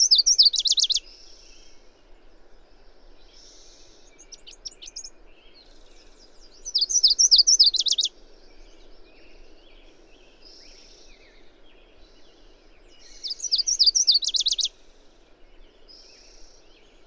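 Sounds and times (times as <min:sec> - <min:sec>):
bird song of high chirps ending in a fast trill: 0:00.0 - 0:01.0, 0:04.2 - 0:05.1, 0:06.6 - 0:08.1, 0:13.2 - 0:14.7.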